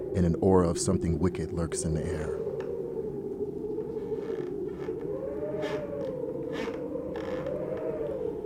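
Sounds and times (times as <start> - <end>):
late night wind whistling through the house shingles: 0.0 - 8.4
speech: 0.2 - 2.5
old wooden walls creaking: 3.9 - 8.4.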